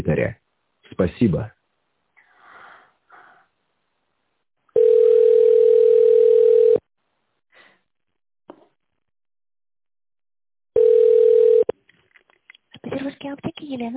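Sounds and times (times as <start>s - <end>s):
speech: 0.0s - 0.4s, 1.0s - 1.6s, 13.2s - 13.9s
telephone ringback tone: 4.8s - 6.8s, 10.8s - 11.7s.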